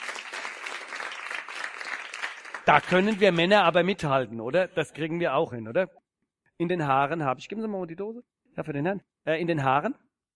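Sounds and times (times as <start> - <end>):
audience clapping at a German variety or comedy show: 0.0 - 3.8
speech: 2.7 - 6.0, 6.6 - 10.0.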